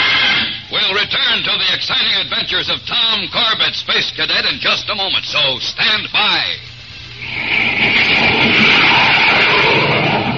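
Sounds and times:
jet plane roaring: 0.0s - 1.7s, 7.0s - 10.3s
speech: 1.4s - 9.1s.

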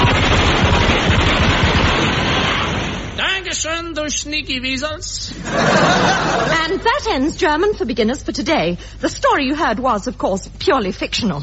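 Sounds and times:
machine gun fire sound effect: 0.0s - 3.3s
speech: 4.1s - 11.4s
laughter: 5.3s - 7.0s.

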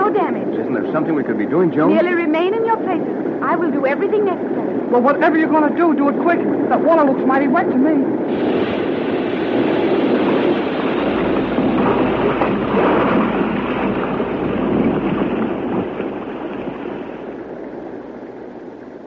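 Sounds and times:
speech: 0.9s - 9.2s
submarine shaken by violent shocks: 8.3s - 18.2s.

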